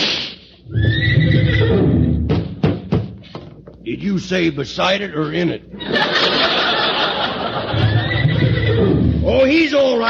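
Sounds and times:
bareback horse whinnying: 0.6s - 2.3s, 7.7s - 9.3s
speech: 3.9s - 6.1s, 9.4s - 10.0s
laughter: 5.7s - 8.9s.

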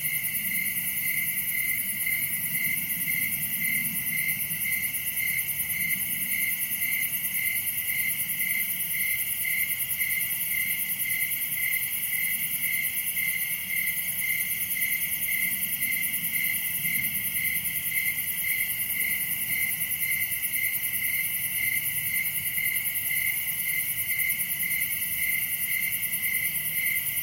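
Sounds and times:
crickets chirping in a dense chorus: 0.0s - 27.2s.

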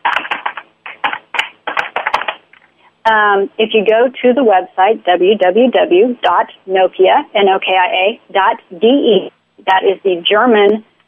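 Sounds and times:
typing on a keyboard: 0.0s - 2.4s
speech: 3.1s - 10.9s.

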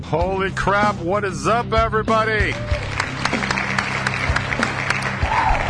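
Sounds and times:
speech: 0.1s - 2.9s
crowd applause: 2.4s - 5.6s.

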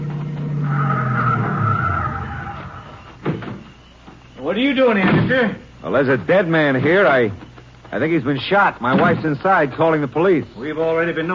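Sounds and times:
cars arriving and skidding to a stop: 0.0s - 3.2s
speech: 4.5s - 11.3s.

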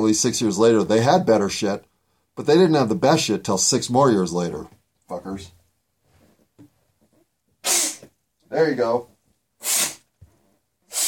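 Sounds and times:
speech: 0.0s - 5.6s, 8.5s - 9.1s
person blowing nose: 7.6s - 8.1s, 9.6s - 10.2s, 10.8s - 11.0s.

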